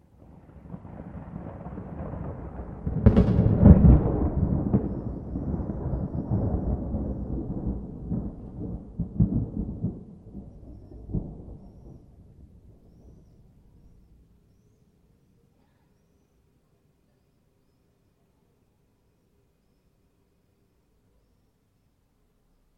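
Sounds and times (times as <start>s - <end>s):
thunder at night: 0.0s - 14.2s
rain at night: 0.0s - 15.8s.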